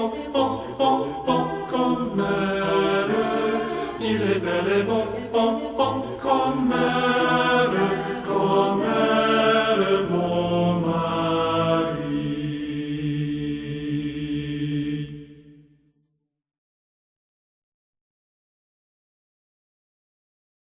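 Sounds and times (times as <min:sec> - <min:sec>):
tenor singing: 0:00.0 - 0:15.2.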